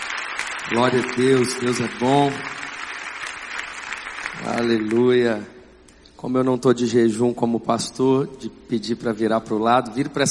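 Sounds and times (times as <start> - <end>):
audience applause: 0.0 - 5.2
speech: 0.7 - 2.7, 4.4 - 5.6, 6.2 - 10.2.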